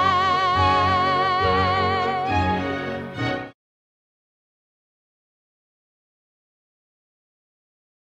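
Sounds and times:
guide vocal: 0:00.0 - 0:02.9.

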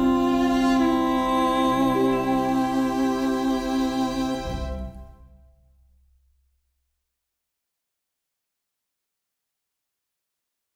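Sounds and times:
person singing: 0:00.0 - 0:05.1.

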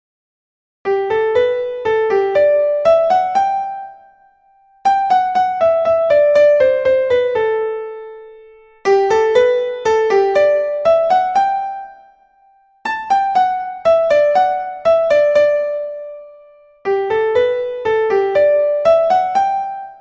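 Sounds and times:
classical piano gavotte: 0:00.9 - 0:04.2, 0:04.8 - 0:12.1, 0:12.9 - 0:19.9.

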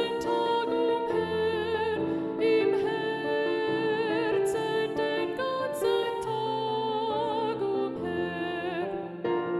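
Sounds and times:
soprano and alto choir singing: 0:00.0 - 0:09.5.

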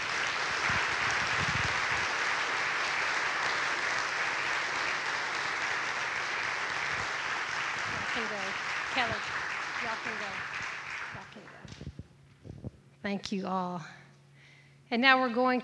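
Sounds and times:
audience applauding with hand claps: 0:00.0 - 0:11.7
speech: 0:08.2 - 0:10.5, 0:13.0 - 0:14.0, 0:14.9 - 0:15.6.

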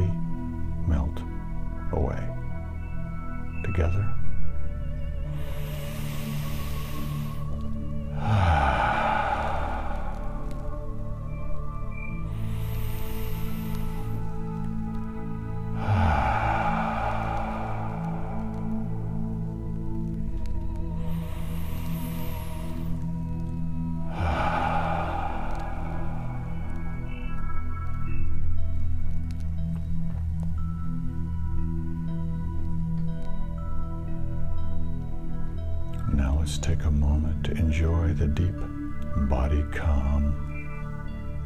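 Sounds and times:
soft drone of music: 0:00.0 - 0:41.4
slow deep breaths: 0:05.2 - 0:28.2.

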